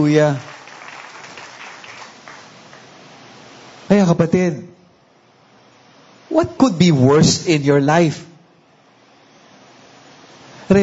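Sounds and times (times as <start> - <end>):
speech: 0.0 - 0.5, 3.9 - 4.7, 6.3 - 8.3
church congregation applauding during a worship service: 0.0 - 3.0.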